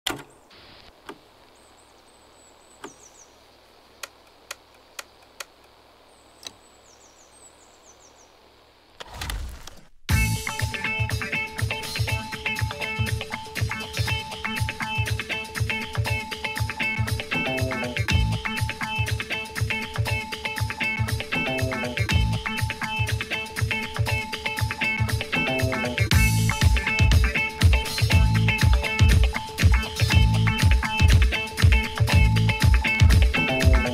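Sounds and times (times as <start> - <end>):
Italian jazz dance and funk music: 10.1 - 33.9.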